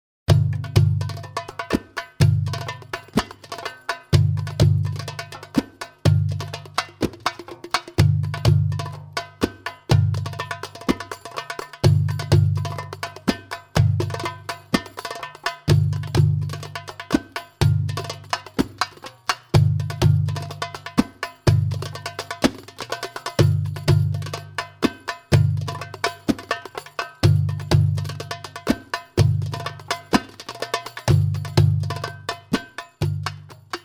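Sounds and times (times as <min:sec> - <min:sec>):
masmoudi drum rhythm for training: 0:00.3 - 0:33.8.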